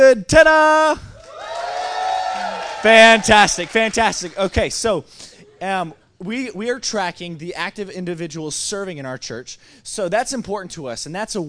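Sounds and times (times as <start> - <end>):
speech: 0.0 - 1.1, 2.8 - 11.4
audience applauding and cheering: 1.2 - 4.8.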